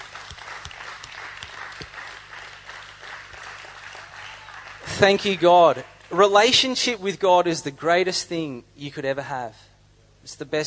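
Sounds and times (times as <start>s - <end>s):
audience clapping: 0.0s - 6.3s
speech: 5.0s - 9.6s, 10.2s - 10.6s.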